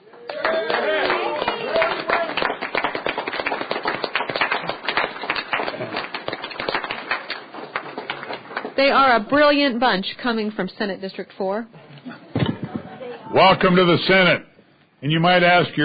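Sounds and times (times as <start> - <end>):
applause in a state Senate chamber in Laramie County: 0.0 - 9.1
speech: 8.8 - 11.8, 13.3 - 15.8.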